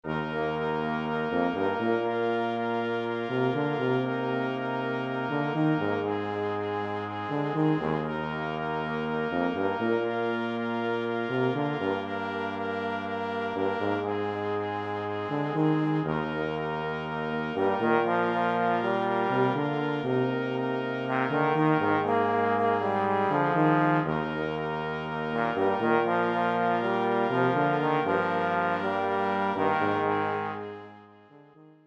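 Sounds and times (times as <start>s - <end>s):
brass quintet: 0.0s - 31.8s.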